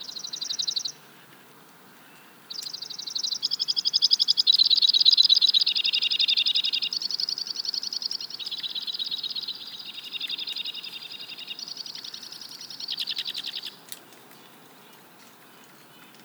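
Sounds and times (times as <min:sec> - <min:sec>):
White-winged Crossbill Loxia leucoptera calling: 0:02.5 - 0:14.0.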